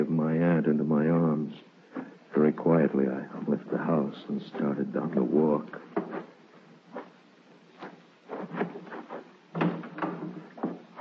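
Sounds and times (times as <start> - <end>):
speech: 0.0 - 1.6, 2.4 - 6.3
door being opened with creak and rattle: 8.6 - 10.9.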